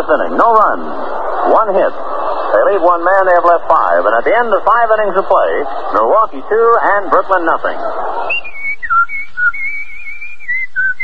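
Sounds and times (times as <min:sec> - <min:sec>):
speech: 0:00.0 - 0:08.0
man whistling a tune: 0:08.3 - 0:11.0.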